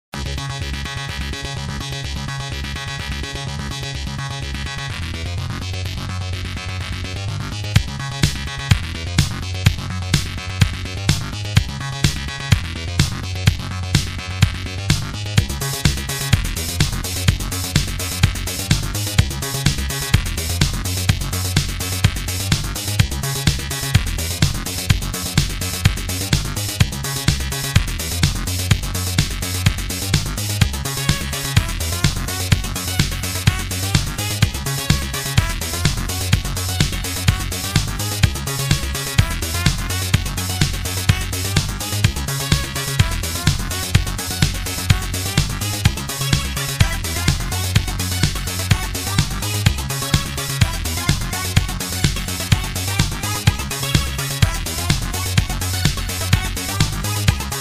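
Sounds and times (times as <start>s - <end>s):
8-bit music: 0.2s - 57.5s.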